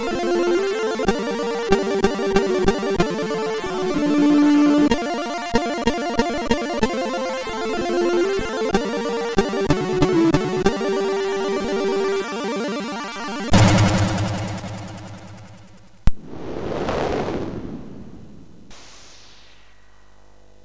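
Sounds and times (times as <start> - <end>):
chiptune intro music on a MOS6581R4 chip: 0.0 - 16.0.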